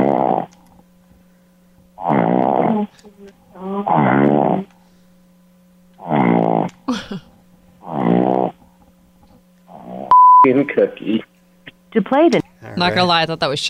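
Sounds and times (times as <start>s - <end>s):
dog snoring: 0.0s - 0.5s, 2.0s - 2.9s, 3.8s - 4.7s, 6.0s - 6.7s, 7.8s - 8.6s, 9.7s - 10.1s
speech: 10.4s - 11.3s, 11.9s - 13.6s.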